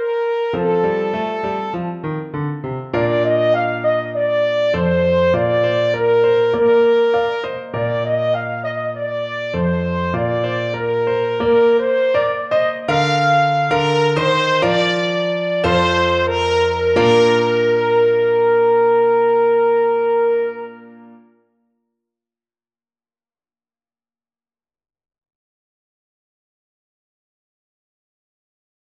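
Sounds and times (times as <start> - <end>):
slow trumpet march: 0.0 - 2.0, 3.0 - 21.2.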